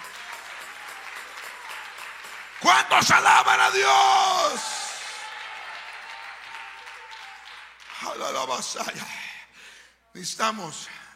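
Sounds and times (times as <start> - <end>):
audience applause: 0.0 - 8.4
speech: 2.6 - 4.7, 8.0 - 9.2, 10.2 - 11.0.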